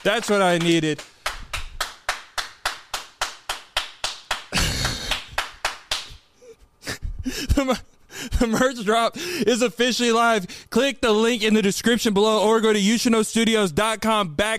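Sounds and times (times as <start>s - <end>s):
speech: 0.0s - 1.1s, 7.6s - 14.5s
studio audience round of applause: 0.0s - 6.0s.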